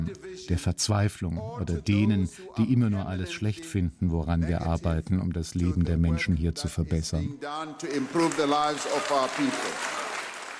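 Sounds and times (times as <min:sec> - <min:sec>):
speech: 0:00.4 - 0:09.9
parliament applause: 0:07.9 - 0:10.5.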